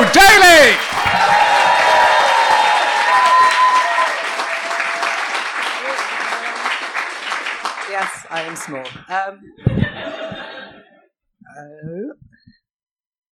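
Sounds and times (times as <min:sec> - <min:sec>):
audience applause: 0:00.0 - 0:09.2
speech: 0:08.7 - 0:09.8
laughter: 0:09.6 - 0:11.1.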